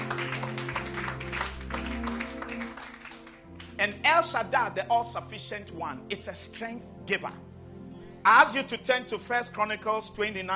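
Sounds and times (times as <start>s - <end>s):
audience clapping hands: 0.0s - 4.0s
speech: 3.8s - 7.5s, 8.2s - 10.5s.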